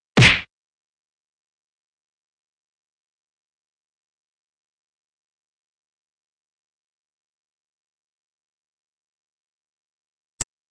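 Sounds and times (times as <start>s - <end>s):
fight sounds: 0.2s - 0.5s.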